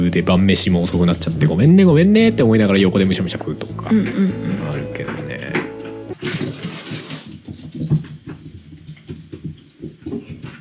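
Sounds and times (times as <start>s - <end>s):
speech: 0.1s - 5.3s
cats excitedly scampering about: 5.2s - 10.5s.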